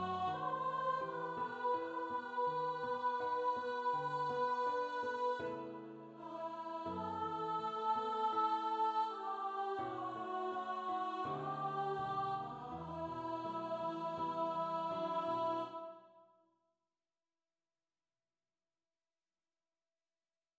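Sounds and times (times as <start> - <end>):
soprano voices singing: 0.0 - 16.2.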